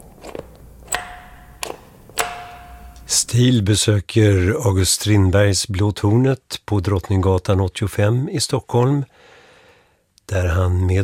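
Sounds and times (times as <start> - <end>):
old doorbell ringing: 0.8 - 3.2
speech: 3.1 - 9.3, 10.3 - 11.0.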